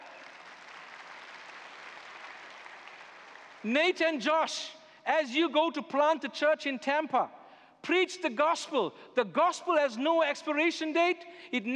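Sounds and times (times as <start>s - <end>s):
audience applause: 0.0s - 3.7s
speech: 3.6s - 11.7s.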